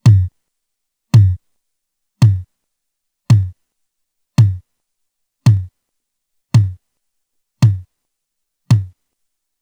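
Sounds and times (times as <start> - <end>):
drum PCM noise: 0.0 - 0.3, 1.2 - 1.4, 2.2 - 2.4, 3.3 - 3.5, 4.4 - 4.6, 5.5 - 5.7, 6.6 - 6.8, 7.6 - 7.8, 8.7 - 8.9.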